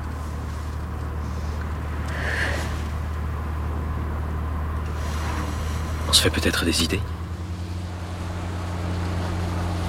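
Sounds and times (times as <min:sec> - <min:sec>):
high engine whine: 0:00.0 - 0:09.8
road traffic rumbling: 0:00.0 - 0:09.8
speech: 0:06.2 - 0:07.2.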